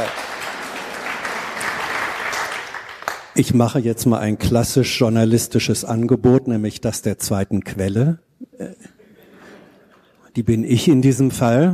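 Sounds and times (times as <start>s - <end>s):
speech: 0.0s - 0.2s, 3.4s - 8.9s, 10.4s - 11.7s
audience applause: 0.0s - 3.4s.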